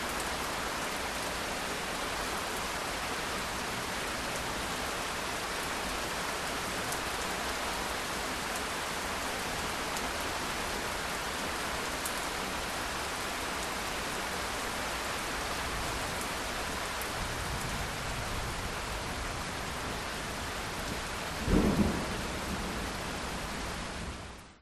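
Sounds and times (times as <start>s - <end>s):
medium rain: 0.0s - 24.6s
distant thunder in a nature thunderstorm: 21.4s - 23.0s.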